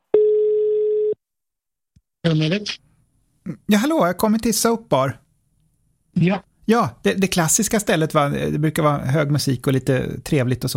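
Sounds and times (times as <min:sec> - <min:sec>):
telephone ringing tone while calling a nightclub: 0:00.1 - 0:01.2
speech: 0:02.2 - 0:02.8, 0:03.4 - 0:05.2, 0:06.2 - 0:10.7.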